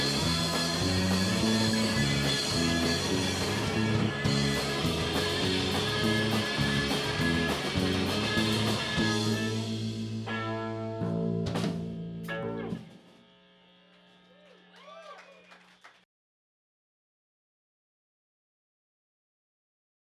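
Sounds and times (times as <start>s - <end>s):
bass: 0.0s - 15.5s.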